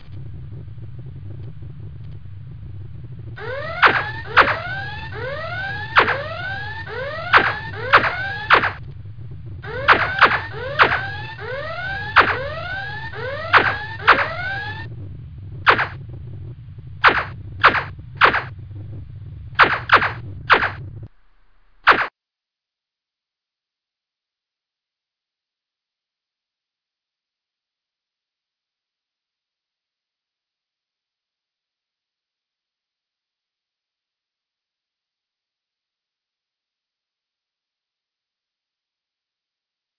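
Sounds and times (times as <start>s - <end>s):
starship engine: 0.0s - 22.1s
starship red alert siren: 3.4s - 16.3s, 17.0s - 21.1s, 21.9s - 22.1s
starship phasers firing: 3.4s - 22.1s.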